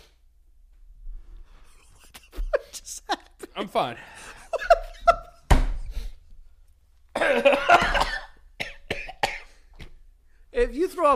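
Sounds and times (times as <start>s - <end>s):
laughter: 1.7s - 5.4s
speech: 3.6s - 4.1s, 10.7s - 11.1s
person coughing and sputtering after choking on water: 7.2s - 9.6s.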